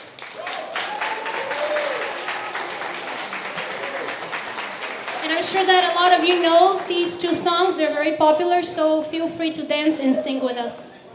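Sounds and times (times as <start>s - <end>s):
audience applause welcoming choir singers: 0.0s - 7.7s
speech: 5.4s - 10.9s.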